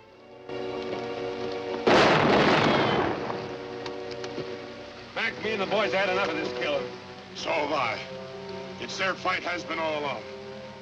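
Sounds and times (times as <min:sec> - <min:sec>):
sustained musical backdrop: 0:00.0 - 0:10.8
single gunshot fired across a hillside in a radio drama: 0:01.9 - 0:03.5
speech: 0:05.4 - 0:08.2, 0:08.8 - 0:10.3.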